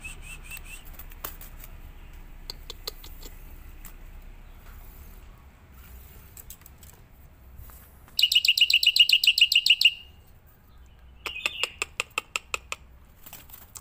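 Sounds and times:
black-winged myna song with trill, clicks and whistles: 0.0s - 0.9s, 8.2s - 10.2s.

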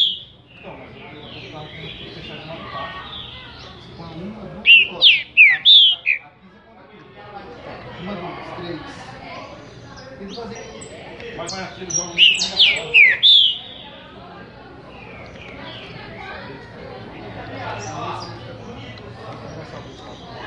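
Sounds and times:
green-winged saltator singing rich slurred whistled notes: 0.0s - 0.7s, 4.6s - 6.2s, 11.9s - 14.0s.

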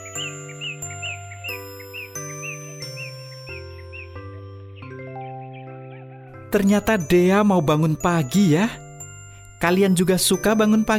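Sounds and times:
birds chirping in the morning: 0.0s - 7.7s
rooster crowing in the morning: 5.9s - 6.5s
speech: 6.5s - 8.8s, 9.6s - 10.9s.

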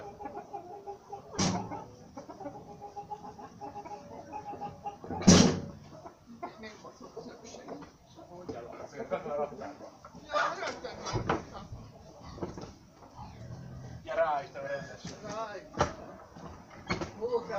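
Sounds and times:
hens clucking: 0.0s - 17.5s
laughter: 8.7s - 11.8s.

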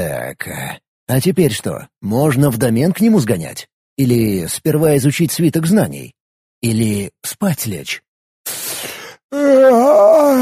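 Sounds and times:
speech: 0.0s - 8.1s, 9.3s - 10.3s
human yawn: 8.5s - 10.3s.

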